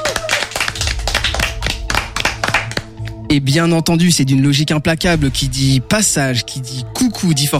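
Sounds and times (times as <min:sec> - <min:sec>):
audience applause: 0:00.0 - 0:02.9
speech: 0:03.3 - 0:07.5.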